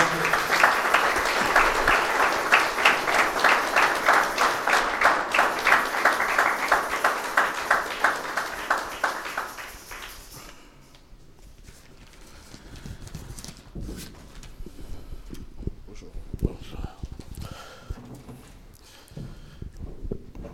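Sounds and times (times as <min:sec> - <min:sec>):
crowd applauding in rhythmic unison beat: 0:00.0 - 0:10.4.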